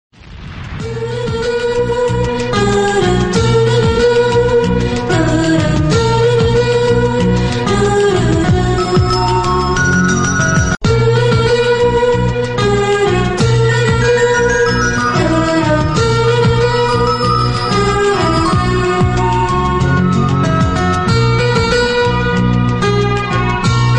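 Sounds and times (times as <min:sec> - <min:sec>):
DJ remix of a Telugu song: 0:00.8 - 0:23.9.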